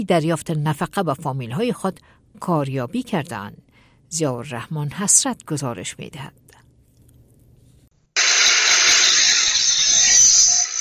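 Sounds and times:
speech: 0.0 - 6.5
prison workshop tools and machinery noise: 8.2 - 10.7.

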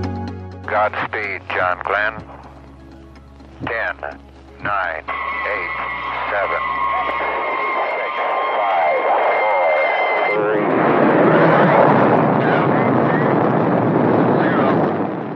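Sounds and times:
speech: 0.7 - 2.5, 3.6 - 7.2
liftoff roar of the U.S. Atlas rocket carrying the Friendship 7 capsule: 4.7 - 15.3.

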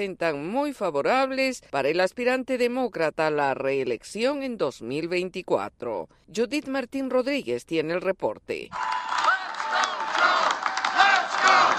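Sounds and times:
speech: 0.0 - 9.2
union conference attendees chanting in support of Joe Biden: 8.8 - 11.7.

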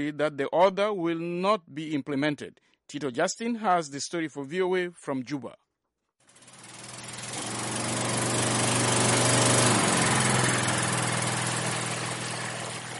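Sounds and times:
speech: 0.0 - 5.6
generator-powered water tanker pumping water: 6.4 - 12.9.

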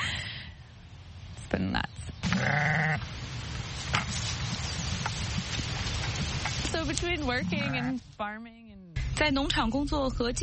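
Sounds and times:
outdoor hiss: 0.0 - 10.1
speech: 1.5 - 3.1, 6.8 - 10.4
sheep bleating: 2.2 - 3.0, 7.4 - 8.0.

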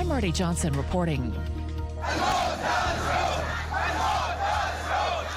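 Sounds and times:
speech: 0.2 - 2.3
crowd of protesters chanting in Al Awamiya, Saudi Arabia: 2.0 - 5.3.

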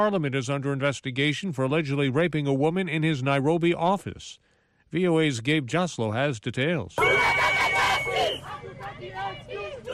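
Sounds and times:
speech: 0.0 - 8.1
crowd of activists chanting: 7.0 - 9.9.

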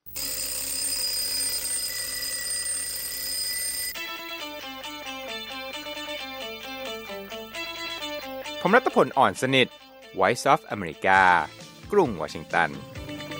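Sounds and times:
alarm clock ringing: 0.1 - 5.2
speech: 8.6 - 12.9.

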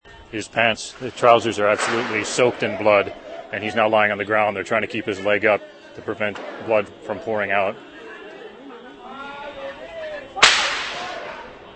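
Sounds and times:
speech: 0.3 - 7.9
gunshots: 0.9 - 4.1, 6.4 - 7.2, 10.4 - 11.7.

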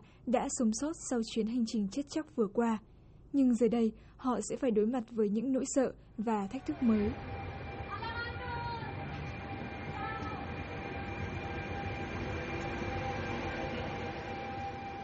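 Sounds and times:
speech: 0.3 - 7.4
train carrying migrants pulling out of Catania: 6.4 - 15.0.

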